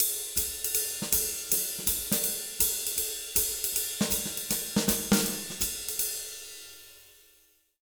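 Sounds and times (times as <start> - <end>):
jazz Latin swing drum loop at 160 bpm: 0.0 - 6.2.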